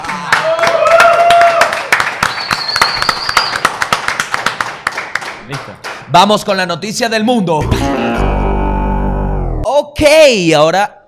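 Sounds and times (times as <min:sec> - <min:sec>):
small group applauding: 0:00.0 - 0:06.1
whistles and cheering: 0:00.6 - 0:03.7
speech: 0:05.5 - 0:08.4, 0:09.7 - 0:11.0.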